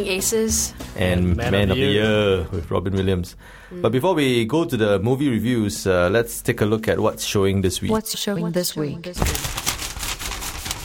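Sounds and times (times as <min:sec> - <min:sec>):
speech: 0:00.0 - 0:09.6
newspaper rustling: 0:09.2 - 0:10.8.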